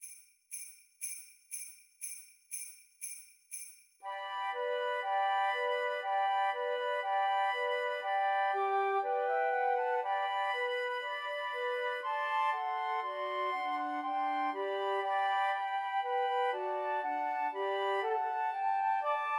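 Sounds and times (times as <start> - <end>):
three flutes playing Christmas music: 4.1 - 19.3.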